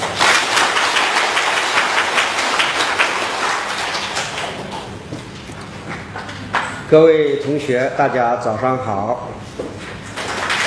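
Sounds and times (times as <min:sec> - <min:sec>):
audience applause: 0:00.0 - 0:05.0, 0:10.2 - 0:10.6
speech: 0:06.9 - 0:09.7.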